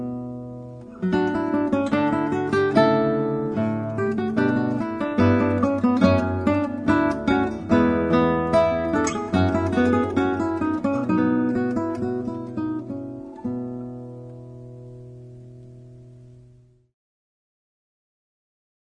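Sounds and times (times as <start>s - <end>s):
classical guitar: 0.0s - 16.9s
two lutes playing: 0.0s - 16.9s.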